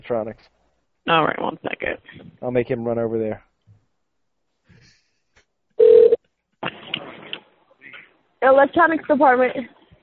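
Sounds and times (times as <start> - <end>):
speech: 0.1 - 3.5, 8.4 - 9.8
person answering the phone line: 5.8 - 6.2
telephone ring tone during a call transfer to a Walmart electronics department: 5.8 - 6.2.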